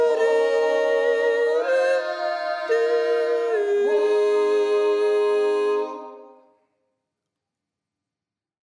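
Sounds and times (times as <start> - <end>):
soprano folk dance music: 0.0 - 6.7.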